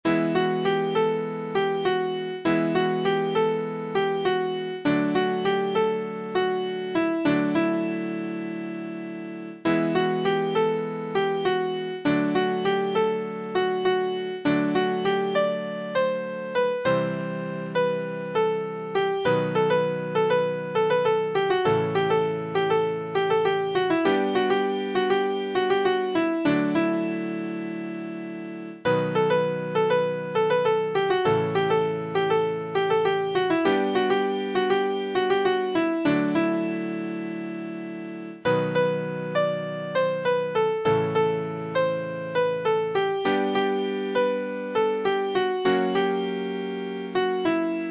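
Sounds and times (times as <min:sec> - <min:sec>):
piano: 0:00.0 - 0:47.8.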